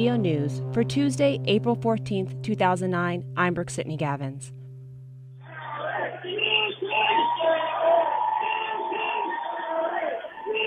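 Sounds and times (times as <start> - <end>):
speech: 0.0 - 4.6
protesters outside the Los Angeles Unified School District headquarters shouting and chanting: 5.4 - 10.6.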